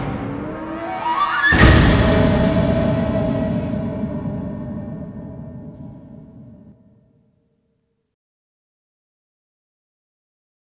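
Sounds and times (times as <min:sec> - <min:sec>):
forest battle music: 0:00.0 - 0:06.8.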